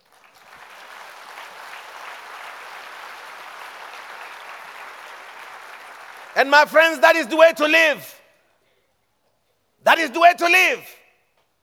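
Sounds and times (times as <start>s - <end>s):
audience clapping: 0.0s - 7.5s
speech: 6.4s - 8.2s, 9.9s - 11.0s.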